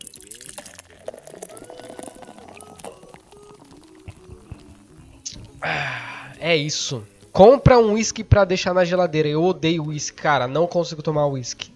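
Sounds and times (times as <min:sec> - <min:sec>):
sipping a cold beer: 0:00.0 - 0:07.4
speech: 0:05.6 - 0:11.7.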